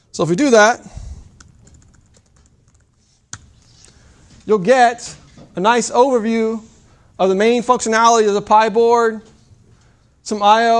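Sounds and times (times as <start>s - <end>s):
speech: 0.2s - 1.0s, 4.5s - 9.3s, 10.3s - 10.7s
computer keyboard keystrokes typing help() into a REPL: 1.3s - 3.4s.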